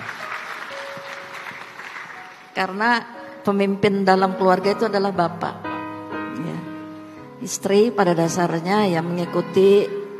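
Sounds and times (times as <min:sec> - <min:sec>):
crowd applause: 0:00.0 - 0:02.6
speech: 0:02.6 - 0:05.7, 0:06.4 - 0:06.7, 0:07.4 - 0:10.0.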